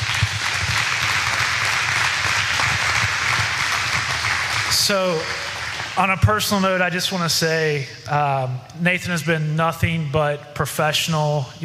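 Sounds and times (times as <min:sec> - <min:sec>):
audience applause: 0:00.0 - 0:06.2
speech: 0:04.8 - 0:05.4, 0:06.0 - 0:11.6.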